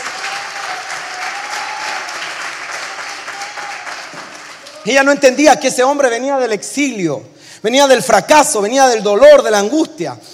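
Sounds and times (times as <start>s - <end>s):
audience applause: 0.0s - 4.9s
speech: 4.8s - 10.3s.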